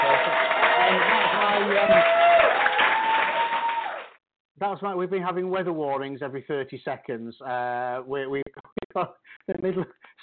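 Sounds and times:
studio audience applause sound effect opening a radio show: 0.0 - 4.2
studio audience cheering sound effect: 0.0 - 4.2
speech: 1.8 - 2.1, 4.6 - 10.2.

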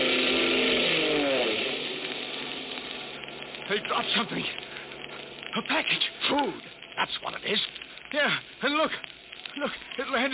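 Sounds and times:
army propeller plane engine drone: 0.0 - 6.8
speech: 3.7 - 4.6, 5.5 - 10.3.

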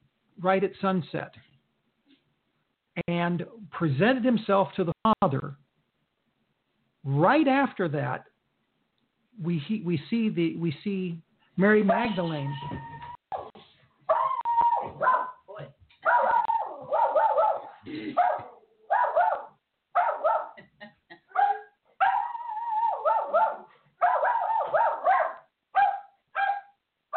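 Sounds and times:
speech: 0.4 - 1.5, 3.0 - 5.6, 7.0 - 8.3, 9.4 - 12.8
dogs whining and whimpering: 12.0 - 19.4, 21.3 - 26.6
dogs barking and yipping: 14.1 - 20.6, 21.3 - 27.1.

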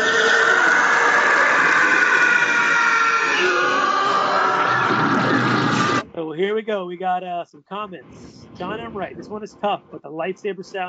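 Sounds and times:
TIE fighter screech sound effect: 0.0 - 6.0
speech: 6.4 - 10.8.

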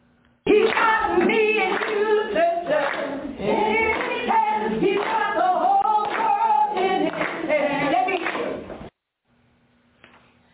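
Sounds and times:
clapping along to an ethnic song and dance: 0.5 - 8.7.

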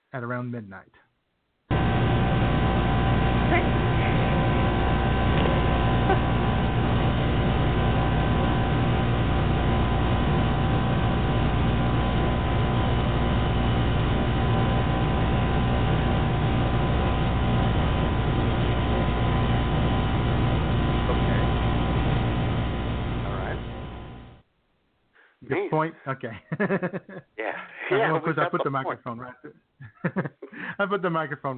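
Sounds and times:
speech: 0.1 - 1.1, 3.5 - 4.2, 25.7 - 31.5
buzzing in a bedroom: 1.7 - 24.4
laughter: 6.0 - 6.4, 25.6 - 31.0.

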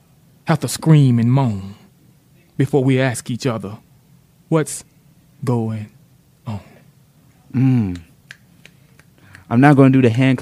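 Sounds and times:
low voiced hum: 0.0 - 3.9, 4.6 - 10.4
speech: 0.5 - 1.8, 2.6 - 3.9, 4.5 - 6.7, 7.5 - 8.1, 9.5 - 10.4
audience finger snapping: 7.8 - 9.5.

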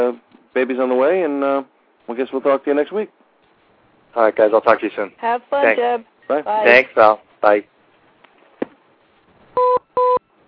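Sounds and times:
speech: 0.0 - 3.2, 4.1 - 7.7
double electronic beeps as a call ends: 9.6 - 10.2.

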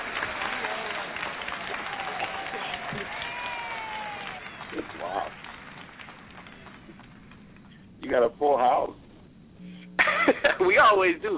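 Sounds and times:
audience applause: 0.0 - 7.8
speech: 8.1 - 9.0, 10.6 - 11.3.

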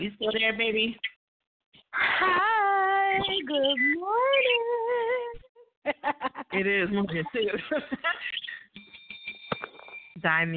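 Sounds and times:
speech: 0.0 - 1.1, 1.9 - 5.1, 5.8 - 8.4, 10.2 - 10.5
laughter: 5.9 - 8.6
bell ringing: 8.8 - 10.2.

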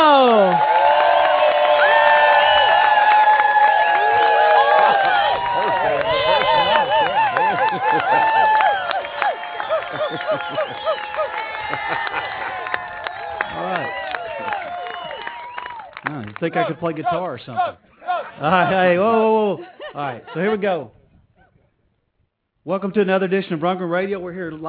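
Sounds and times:
loud crowd cheering, whooping and clapping: 0.0 - 17.3
laughter: 4.4 - 14.6, 18.0 - 20.9
speech: 16.4 - 21.0, 22.6 - 24.6.

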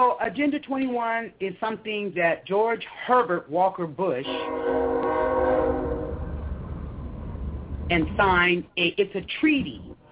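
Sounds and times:
speech: 0.0 - 5.0, 7.9 - 9.9
passing train horn blast: 4.2 - 6.2
rolling train cars rumbling: 4.3 - 10.1.

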